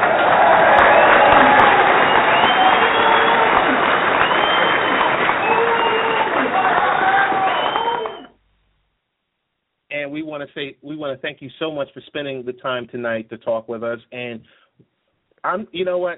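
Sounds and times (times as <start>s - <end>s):
audience applause and cheering for a guest: 0.0s - 8.3s
whoops and voices: 0.5s - 8.3s
speech: 10.5s - 16.1s.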